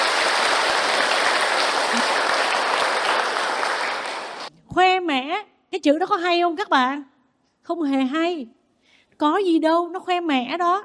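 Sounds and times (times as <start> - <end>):
audience applause: 0.0 - 4.5
speech: 5.7 - 7.1, 7.7 - 8.6, 9.2 - 10.8.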